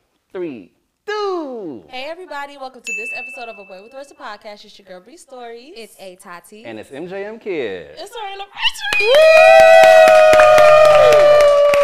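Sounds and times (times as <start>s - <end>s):
speech: 0.4s - 10.1s
live studio audience clapping at an anniversary celebration: 8.8s - 11.8s.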